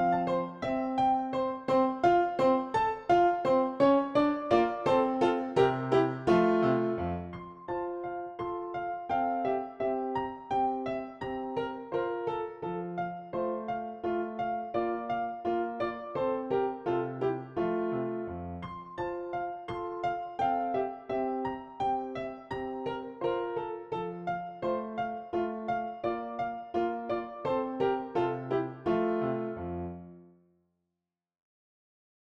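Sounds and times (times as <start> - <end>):
dance piano on PianoTeq Bechstein: 0.0 - 30.1.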